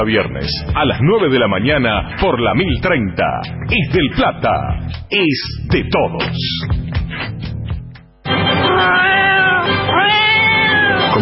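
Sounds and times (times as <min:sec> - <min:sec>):
speech: 0:00.0 - 0:07.3
kitten meowing: 0:08.7 - 0:11.2.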